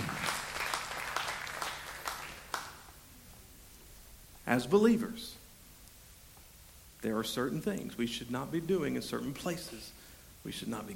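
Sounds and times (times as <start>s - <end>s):
crowd applause: 0.0s - 2.9s
speech: 4.5s - 5.4s, 7.0s - 10.9s.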